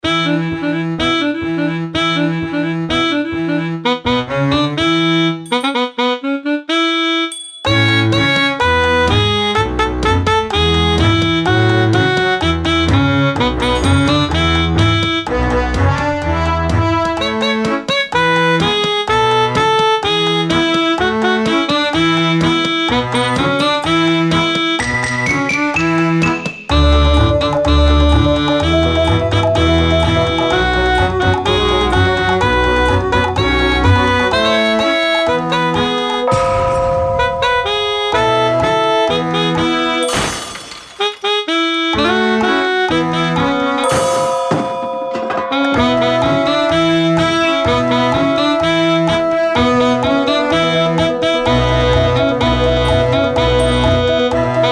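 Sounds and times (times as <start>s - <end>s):
instrumental music: 0.0s - 54.7s.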